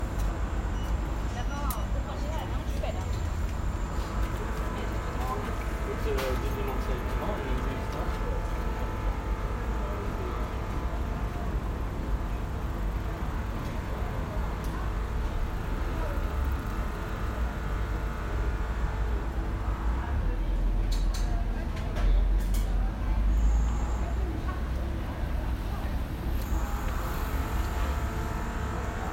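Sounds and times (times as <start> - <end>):
Osterhaus gate street ambience in Oslo: 0.0 - 29.1.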